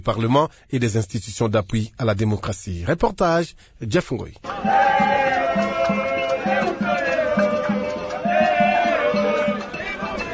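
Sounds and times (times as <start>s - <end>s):
speech: 0.0s - 5.6s
large lively crowd chanting and singing in courtyard: 4.4s - 10.3s
rhythmic thumping beat: 4.4s - 10.3s.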